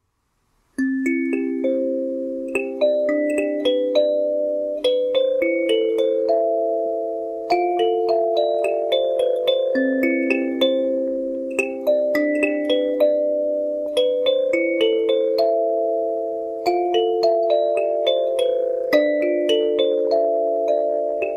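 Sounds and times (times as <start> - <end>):
kalimba cover: 0.8 - 21.3.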